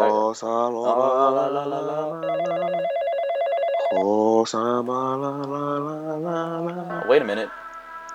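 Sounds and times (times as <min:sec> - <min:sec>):
speech: 0:00.3 - 0:03.0, 0:03.9 - 0:07.6
telephone ringback tone after dialing a number: 0:02.2 - 0:04.2.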